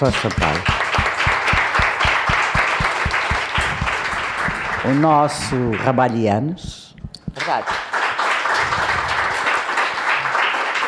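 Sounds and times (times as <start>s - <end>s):
speech: 0.0s - 1.0s, 4.8s - 6.8s, 7.4s - 7.8s
audience applause: 0.0s - 6.2s, 7.4s - 10.8s.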